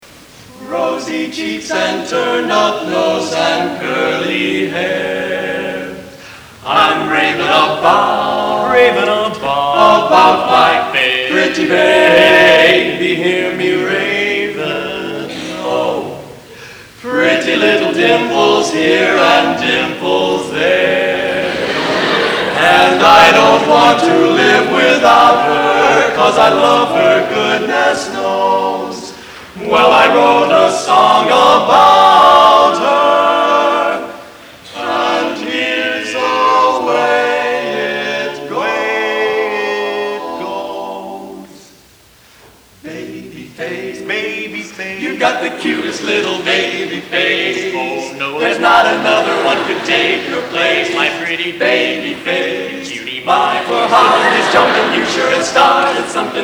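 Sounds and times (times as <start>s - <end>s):
men's quartet singing: 0.0s - 56.4s
laughter: 14.6s - 31.5s, 48.4s - 52.7s, 53.3s - 56.4s.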